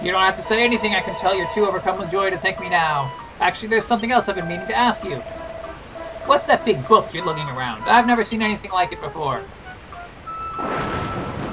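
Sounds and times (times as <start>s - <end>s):
speech: 0.0s - 5.4s, 6.3s - 9.6s
faint high chirping tones: 0.0s - 11.3s
rain pouring: 0.0s - 11.5s.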